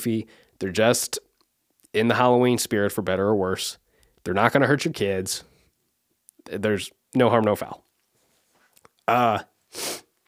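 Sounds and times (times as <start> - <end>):
speech: 0.0 - 1.2, 1.9 - 5.5, 6.5 - 7.8, 9.1 - 10.0
sniffling: 9.7 - 10.1.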